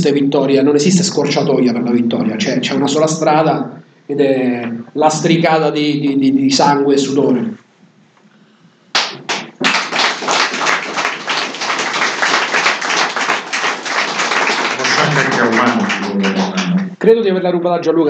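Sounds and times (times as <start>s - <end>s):
speech: 0.0s - 7.6s, 17.0s - 18.0s
audience applause: 9.0s - 17.0s
laughter: 14.6s - 17.0s.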